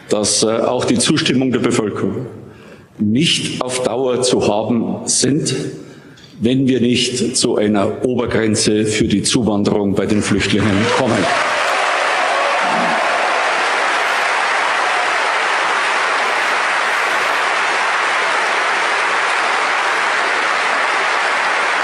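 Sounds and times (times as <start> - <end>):
speech: 0.1 - 2.4, 3.0 - 11.6
audience applause: 10.4 - 21.8.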